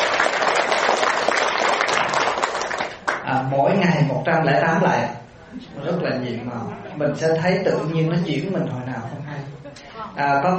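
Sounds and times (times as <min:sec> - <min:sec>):
audience applause: 0:00.0 - 0:03.2
speech: 0:03.4 - 0:10.5.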